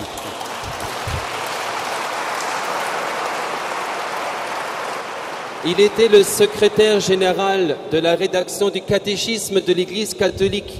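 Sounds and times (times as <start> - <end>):
audience applause: 0.0 - 7.4
speech: 5.6 - 10.7.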